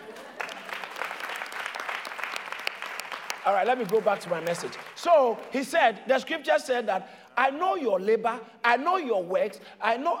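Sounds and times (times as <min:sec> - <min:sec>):
audience applause: 0:00.0 - 0:05.0
speech: 0:03.4 - 0:10.1.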